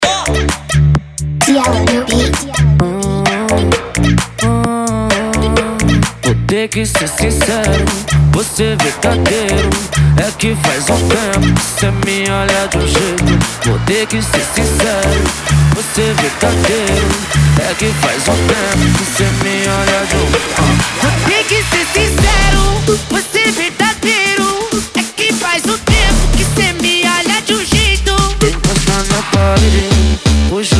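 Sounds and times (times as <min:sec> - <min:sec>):
funk remix: 0:00.0 - 0:30.7.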